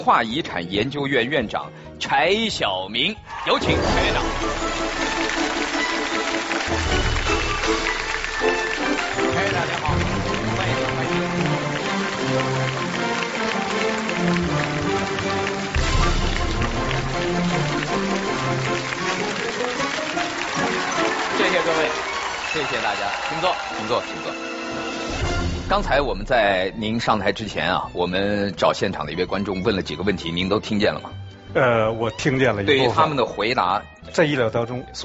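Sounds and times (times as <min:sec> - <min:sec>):
speech: 0:00.0 - 0:05.8, 0:21.6 - 0:24.5, 0:25.7 - 0:35.0
upbeat stage music with a steady low bass pulse: 0:00.0 - 0:35.0
audience applause: 0:03.3 - 0:25.2.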